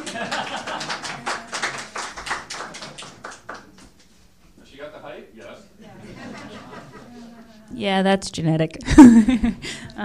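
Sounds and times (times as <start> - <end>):
laughter: 0.0 - 2.0, 5.8 - 7.6, 8.8 - 9.6
small audience applause at a local history reading: 0.0 - 3.9
speech: 7.8 - 10.0.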